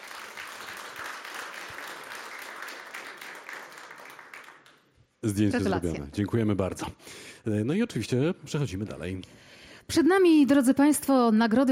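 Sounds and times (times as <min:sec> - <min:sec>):
audience applause at an award ceremony prize presentation: 0:00.0 - 0:05.5
speech: 0:05.2 - 0:11.6.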